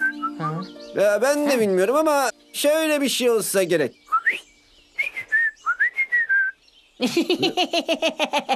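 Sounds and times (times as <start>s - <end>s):
speech: 0.4s - 4.4s, 7.0s - 8.5s
person whistling to call birds: 4.1s - 4.4s, 5.0s - 6.6s
laughter: 7.0s - 8.5s.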